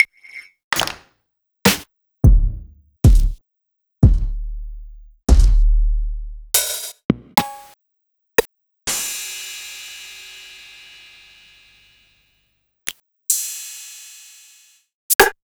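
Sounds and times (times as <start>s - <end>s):
Roland MV8800 dirt and grime drum kit: 1.7s - 3.4s, 4.0s - 4.4s, 5.3s - 5.8s, 6.6s - 7.7s.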